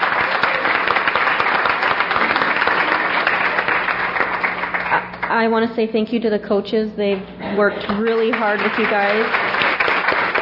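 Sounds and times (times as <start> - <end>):
audience applause: 0.0 - 5.4, 8.0 - 10.4
speech: 5.4 - 9.4.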